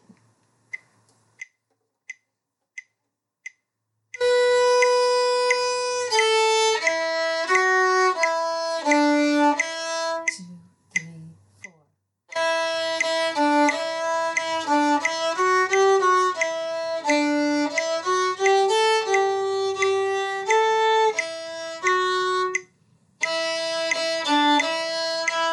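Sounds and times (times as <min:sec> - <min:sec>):
violin: 0:04.2 - 0:10.4, 0:12.3 - 0:25.5.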